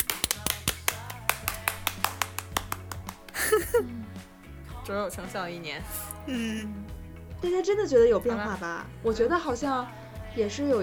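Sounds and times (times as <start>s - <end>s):
clapping: 0.0s - 3.4s
laughter: 3.2s - 4.1s, 5.9s - 6.7s
speech: 3.5s - 4.2s, 4.8s - 10.8s.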